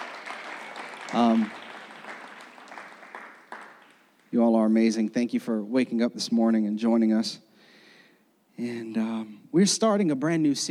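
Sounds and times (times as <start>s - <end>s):
audience clapping: 0.0s - 4.6s
speech: 1.1s - 1.6s, 4.3s - 7.5s, 8.6s - 10.6s.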